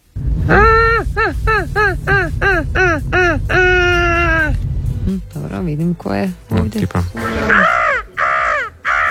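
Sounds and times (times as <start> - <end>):
speech: 0.5 - 0.8, 5.6 - 7.8
seagulls calling: 0.5 - 4.6, 7.1 - 9.0.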